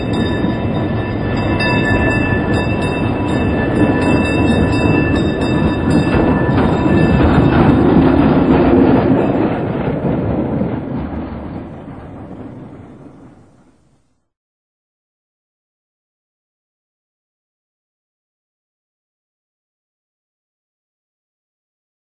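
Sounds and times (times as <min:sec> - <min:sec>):
tram passing by: 0:00.0 - 0:14.2.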